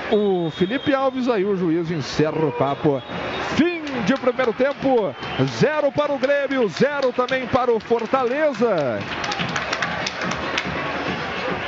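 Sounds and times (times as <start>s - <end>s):
speech: 0.1s - 9.6s
stadium crowd applauding: 2.6s - 11.6s.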